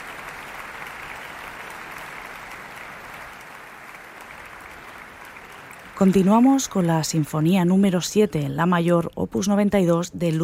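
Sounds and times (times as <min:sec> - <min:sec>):
concert audience applause: 0:00.0 - 0:07.3
speech: 0:06.0 - 0:10.4.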